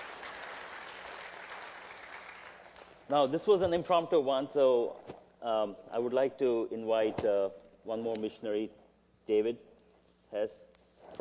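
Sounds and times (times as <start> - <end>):
audience applause after a missionary shares about a journey: 0.0 - 2.9
speech: 3.1 - 9.7, 10.3 - 11.1.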